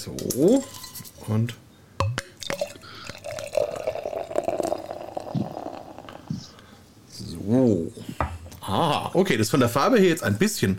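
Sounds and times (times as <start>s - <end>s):
speech: 0.0s - 1.6s, 7.5s - 8.1s, 8.7s - 10.7s
beer gurgling as it is poured into a glass: 2.4s - 6.2s.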